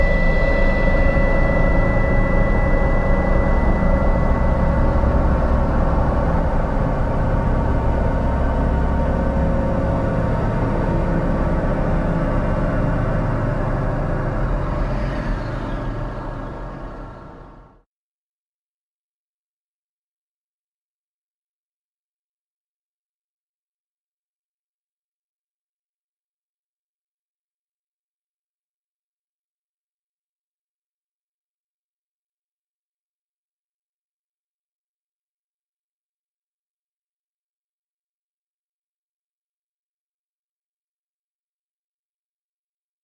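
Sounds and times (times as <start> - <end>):
synth pads: 0.0 - 17.8.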